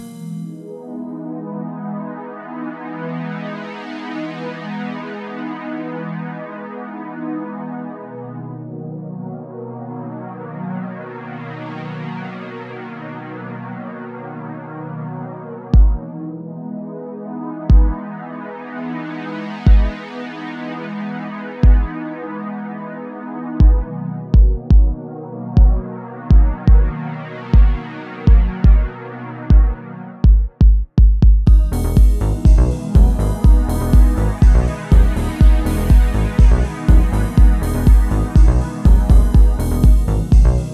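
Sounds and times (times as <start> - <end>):
positive and happy deep techno house music: 0.0 - 0.8, 15.7 - 16.5, 17.7 - 18.2, 19.5 - 21.0, 21.6 - 22.1, 23.6 - 40.7.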